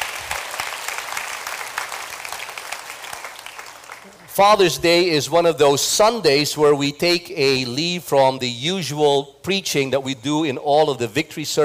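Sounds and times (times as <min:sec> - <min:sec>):
audience applause: 0:00.0 - 0:04.4
speech: 0:04.4 - 0:11.6.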